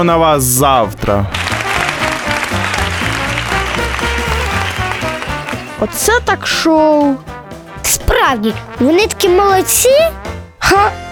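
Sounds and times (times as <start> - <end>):
speech: 0.0 - 1.4, 5.8 - 11.0
music with a rhythmic stepping bass line: 1.1 - 11.0
audience applause after circus act: 1.3 - 6.1.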